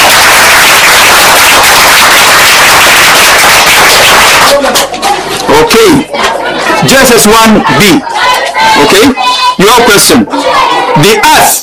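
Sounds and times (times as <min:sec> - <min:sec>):
crowd applause: 0:00.0 - 0:07.4
speech: 0:07.0 - 0:11.6.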